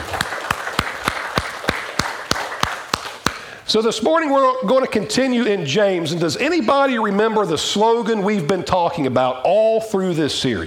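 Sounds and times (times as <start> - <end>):
audience applause: 0.0 - 3.4
sharp rhythmic claps: 0.0 - 3.6
speech: 3.7 - 10.6.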